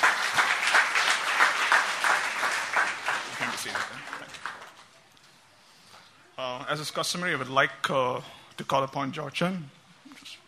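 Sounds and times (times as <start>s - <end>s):
crowd applauding: 0.0s - 4.9s
speech: 6.7s - 9.8s.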